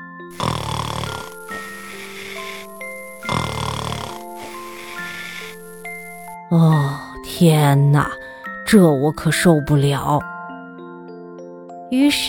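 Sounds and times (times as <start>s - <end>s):
snoring: 0.3s - 6.4s
speech: 7.4s - 10.3s, 11.9s - 12.2s.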